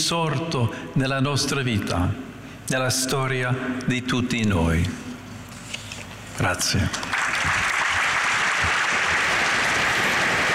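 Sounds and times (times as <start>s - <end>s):
speech: 0.0s - 5.1s, 6.4s - 7.2s
sustained applause from a large audience: 7.1s - 10.5s.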